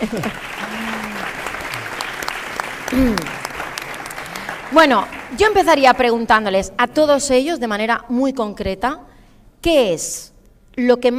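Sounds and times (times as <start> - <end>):
speech: 0.0 - 0.6, 2.9 - 3.4, 4.7 - 11.1
audience applause: 0.0 - 5.9.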